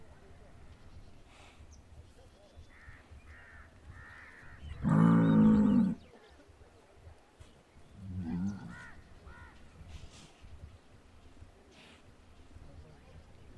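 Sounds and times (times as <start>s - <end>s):
bull bellowing: 4.8s - 6.0s.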